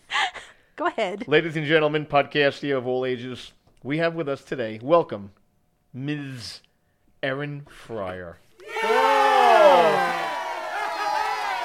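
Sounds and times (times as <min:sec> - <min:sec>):
speech: 0:00.8 - 0:05.4, 0:06.0 - 0:09.0
crowd cheering sound effect: 0:08.6 - 0:11.6.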